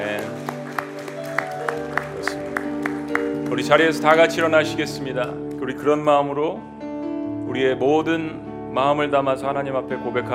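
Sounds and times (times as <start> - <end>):
audience applause: 0.0 - 4.8
speech: 3.5 - 6.7, 7.5 - 10.3.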